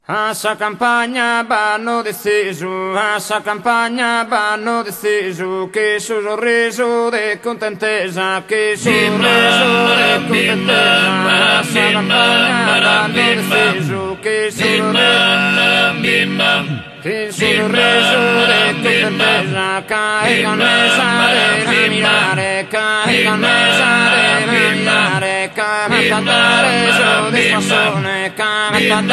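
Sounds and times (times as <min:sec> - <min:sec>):
tenores vocal group singing for a ballu dance: 0:00.1 - 0:29.1.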